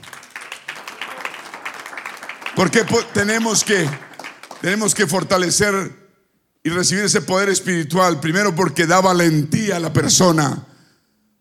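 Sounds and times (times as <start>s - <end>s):
applause: 0.0s - 5.3s
speech: 2.6s - 6.0s, 6.6s - 10.7s.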